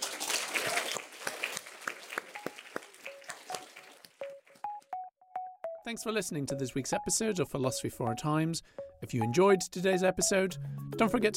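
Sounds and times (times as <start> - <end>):
audience applause after a panel discussion: 0.0 - 4.3
speech: 5.9 - 11.3.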